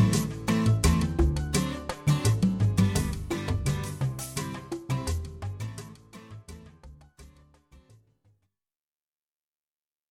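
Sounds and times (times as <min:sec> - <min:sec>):
Latin style guitar: 0:00.0 - 0:08.0.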